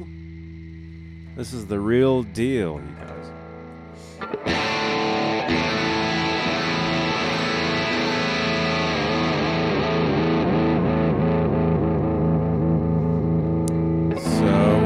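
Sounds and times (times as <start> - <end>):
heavily distorted electric guitar jamming: 0.0 - 14.8
speech: 1.4 - 3.4, 4.0 - 4.7.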